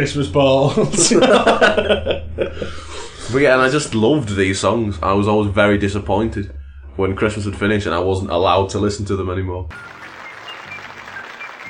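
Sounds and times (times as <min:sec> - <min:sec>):
speech: 0:00.0 - 0:10.0
laughter: 0:00.6 - 0:03.4
applause: 0:09.7 - 0:11.6.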